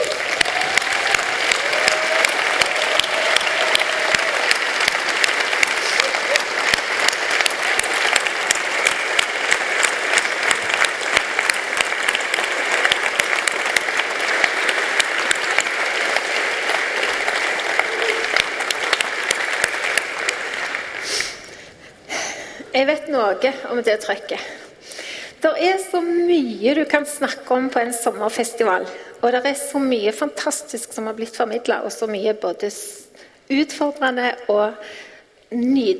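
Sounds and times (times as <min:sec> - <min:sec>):
standing audience applause: 0:00.0 - 0:22.1
speech: 0:22.8 - 0:24.6, 0:25.4 - 0:35.9.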